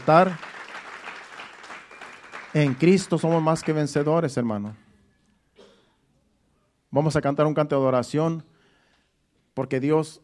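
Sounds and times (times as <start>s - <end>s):
speech: 0.0s - 0.4s, 2.5s - 4.8s, 6.9s - 8.5s, 9.6s - 10.2s
audience applauding: 0.0s - 4.2s.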